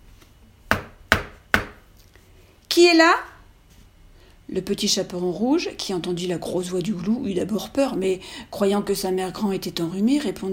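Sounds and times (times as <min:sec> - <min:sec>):
knocking on a wooden door: 0:00.7 - 0:01.8
speech: 0:02.8 - 0:03.3, 0:04.5 - 0:10.5.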